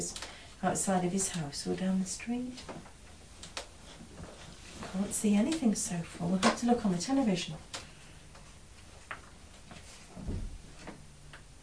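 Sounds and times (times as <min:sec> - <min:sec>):
speech: 0:00.0 - 0:02.9, 0:04.9 - 0:07.8
neighbours' door shutting: 0:10.1 - 0:11.0.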